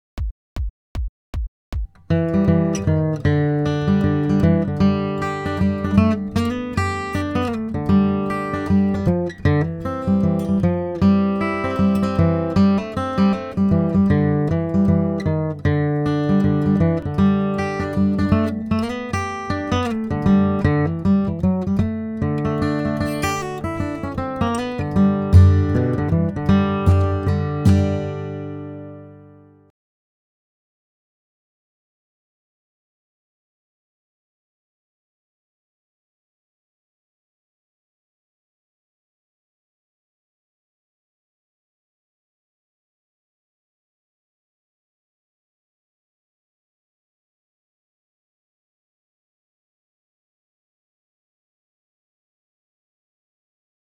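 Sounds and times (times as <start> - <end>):
blues guitar: 2.1 - 29.6.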